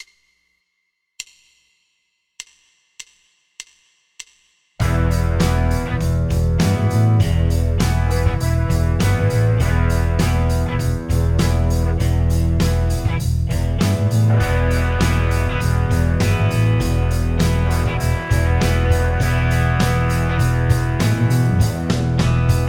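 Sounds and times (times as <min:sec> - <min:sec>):
backing track at 100 bpm: 0:04.8 - 0:22.6.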